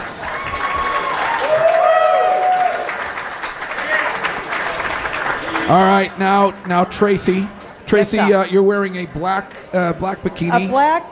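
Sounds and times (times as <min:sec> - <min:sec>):
audience applause: 0:00.0 - 0:07.1
speech: 0:05.7 - 0:11.1.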